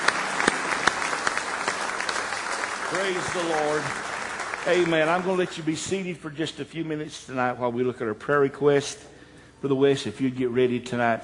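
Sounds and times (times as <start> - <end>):
church congregation clapping in praise: 0.0 - 6.1
speech: 2.9 - 4.0, 4.6 - 11.2.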